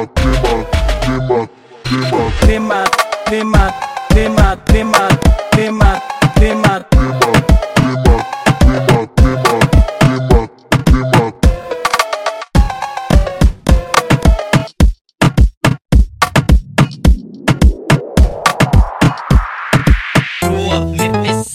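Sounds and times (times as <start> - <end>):
slowed funk music: 0.2 - 1.3, 1.9 - 15.4, 15.9 - 21.5.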